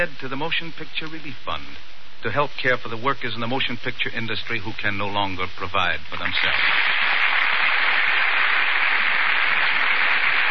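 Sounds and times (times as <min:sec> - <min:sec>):
speech: 0:00.0 - 0:07.2
burst of applause: 0:06.4 - 0:10.4.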